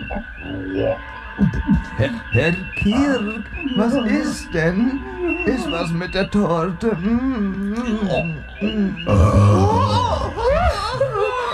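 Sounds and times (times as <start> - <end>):
speech: 0.1 - 10.4
laughter: 1.4 - 11.5
burp: 9.0 - 10.3.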